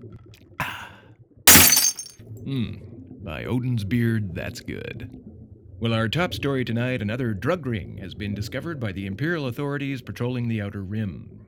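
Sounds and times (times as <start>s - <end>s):
cocktail glass smashed on the ground: 1.5s - 2.1s
speech: 2.5s - 11.4s.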